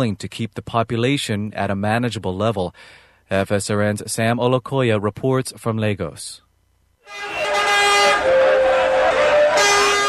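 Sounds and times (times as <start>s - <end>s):
speech: 0.0s - 6.4s
rumble of motorbike and bus engines in traffic: 7.1s - 10.0s
vehicle horns blaring on busy city road: 7.1s - 10.0s.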